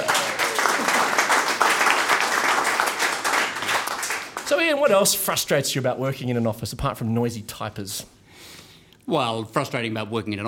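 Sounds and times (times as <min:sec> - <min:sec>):
audience applause: 0:00.0 - 0:04.6
speech: 0:04.5 - 0:08.2, 0:09.1 - 0:10.4.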